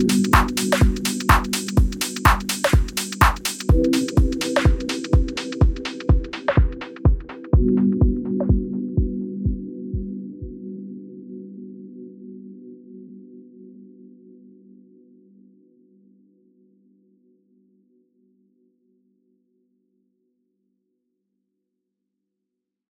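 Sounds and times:
bass house music: 0.0s - 10.1s.

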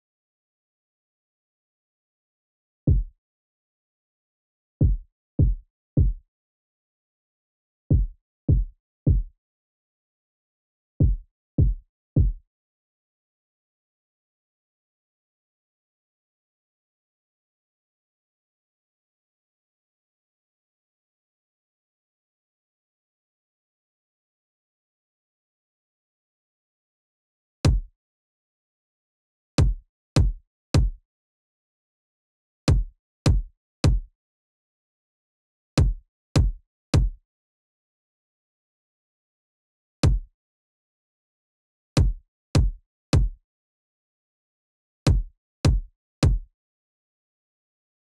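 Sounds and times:
kick drum: 2.9s - 3.2s, 4.8s - 6.2s, 7.9s - 9.4s, 11.0s - 12.4s, 27.7s - 27.9s, 29.6s - 31.0s, 32.7s - 34.1s, 35.8s - 37.2s, 40.0s - 40.3s, 42.0s - 43.4s, 45.1s - 46.5s.

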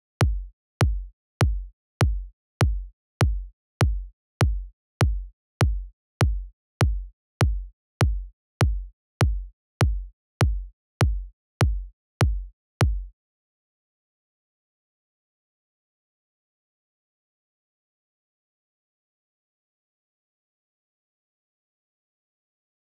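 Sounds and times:
kick drum: 0.0s - 13.1s.

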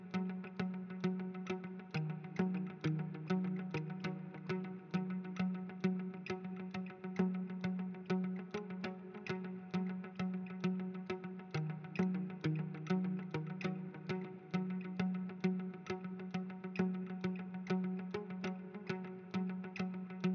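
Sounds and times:
bouncy guitar in F major: 0.0s - 20.3s.

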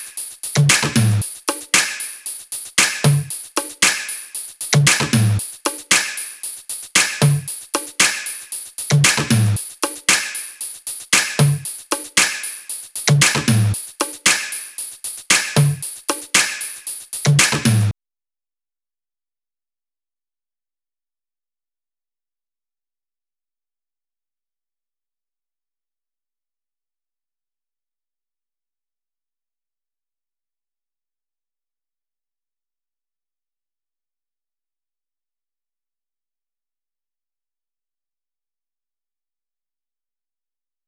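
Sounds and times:
top drum loop: 0.0s - 17.9s.

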